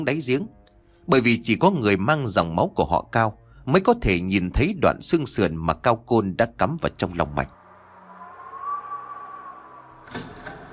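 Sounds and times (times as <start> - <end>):
speech: 0.0 - 7.6
cold wind blowing: 7.6 - 10.7
doors creaking in the wind: 8.4 - 10.7.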